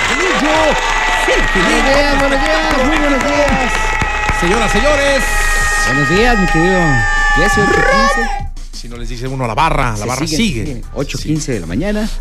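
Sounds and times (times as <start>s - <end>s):
applause: 0.0s - 5.7s
speech: 0.7s - 3.8s, 4.4s - 12.1s.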